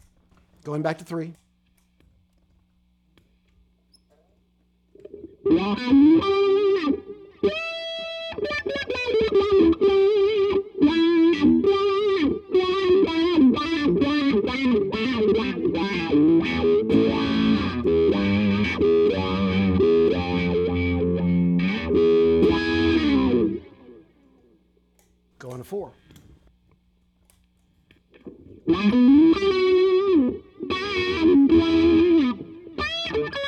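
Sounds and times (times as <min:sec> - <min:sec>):
speech: 0:00.7 - 0:01.4, 0:05.6 - 0:07.0
distorted electric guitar through wah pedal: 0:05.0 - 0:24.2, 0:28.1 - 0:33.4.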